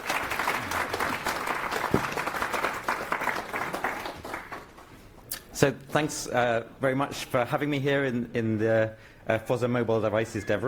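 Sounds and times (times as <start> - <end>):
audience applause: 0.0 - 5.0
speech: 5.6 - 10.6.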